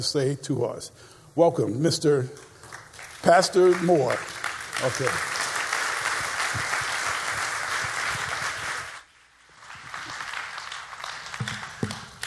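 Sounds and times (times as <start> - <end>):
speech: 0.0 - 2.5, 3.2 - 5.3
audience applause: 2.7 - 12.2.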